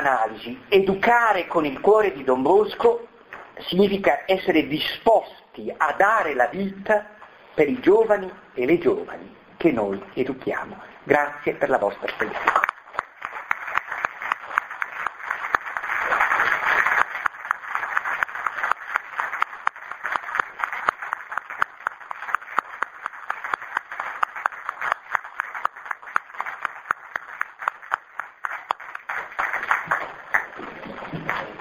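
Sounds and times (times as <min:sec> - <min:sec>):
speech: 0:00.0 - 0:12.6
audience applause: 0:12.3 - 0:31.6.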